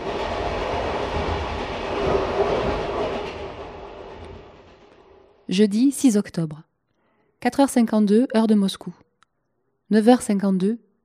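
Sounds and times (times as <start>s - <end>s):
train wheels clacking on rails: 0.0s - 5.3s
train number 8 to Vladivostok rumbling through Siberia: 0.0s - 6.2s
speech: 5.5s - 6.7s, 7.4s - 9.0s, 9.9s - 10.8s.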